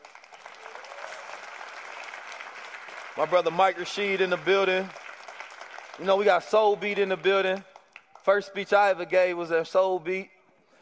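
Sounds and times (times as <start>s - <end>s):
crowd applause: 0.0s - 7.5s
speech: 3.2s - 5.0s, 6.0s - 10.4s.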